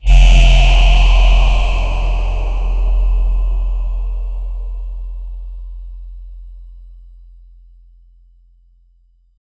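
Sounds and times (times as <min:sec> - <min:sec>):
angelic choir: 0:00.0 - 0:05.9.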